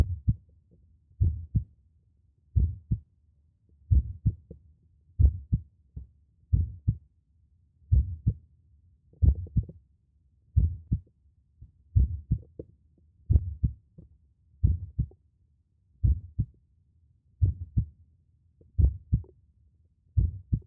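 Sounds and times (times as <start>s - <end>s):
heartbeat: 0.0s - 0.4s, 1.2s - 1.7s, 2.6s - 3.0s, 3.9s - 4.5s, 5.2s - 5.6s, 6.5s - 7.0s, 7.9s - 8.4s, 9.2s - 9.8s, 10.6s - 11.1s, 12.0s - 12.7s, 13.3s - 13.8s, 14.6s - 15.2s, 16.0s - 16.5s, 17.4s - 17.9s, 18.7s - 19.3s, 20.2s - 20.6s.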